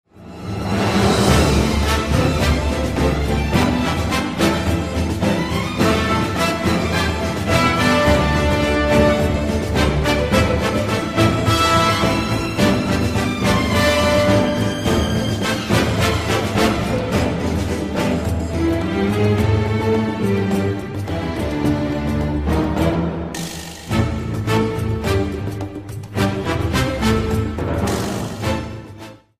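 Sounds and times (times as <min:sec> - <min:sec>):
drums: 0:00.1 - 0:29.3.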